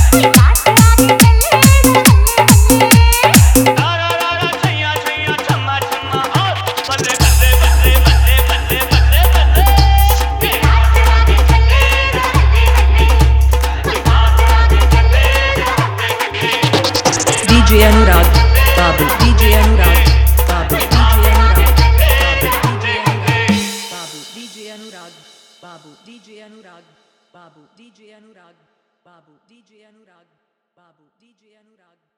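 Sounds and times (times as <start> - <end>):
bass: 0.0 - 3.8, 7.1 - 23.6
dholak drum in Hindi bass mix: 0.0 - 26.0.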